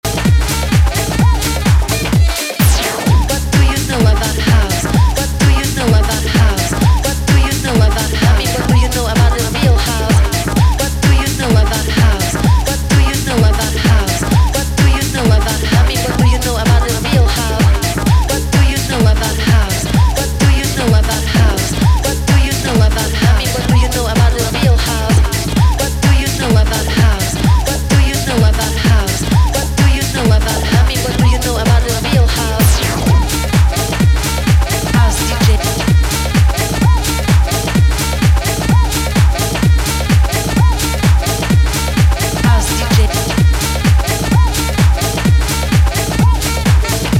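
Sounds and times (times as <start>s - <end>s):
jazz music: 0.0s - 27.3s, 28.3s - 47.1s.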